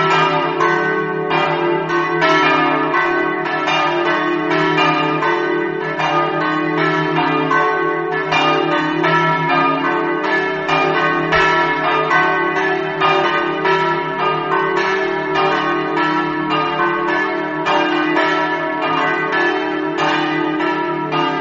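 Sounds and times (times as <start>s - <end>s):
bells ringing in Villavicentina: 0.0s - 21.4s.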